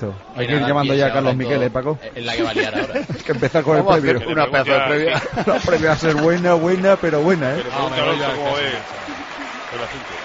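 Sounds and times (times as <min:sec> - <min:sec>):
speech: 0:00.0 - 0:10.2
laughter: 0:02.3 - 0:10.2
tennis crowd applauding: 0:05.4 - 0:10.2.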